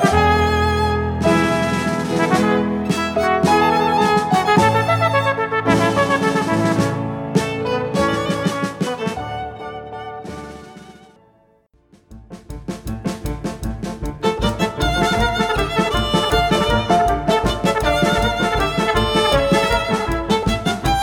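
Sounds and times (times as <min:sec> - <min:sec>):
flugelhorn: 0:00.0 - 0:11.1, 0:14.5 - 0:21.0
violin: 0:00.0 - 0:11.4, 0:13.1 - 0:21.0
piano: 0:00.0 - 0:21.0.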